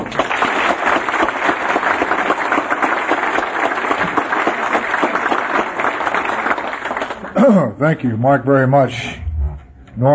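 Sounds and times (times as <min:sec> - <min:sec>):
audience applause: 0:00.0 - 0:07.4
speech: 0:07.5 - 0:09.2, 0:10.0 - 0:10.1.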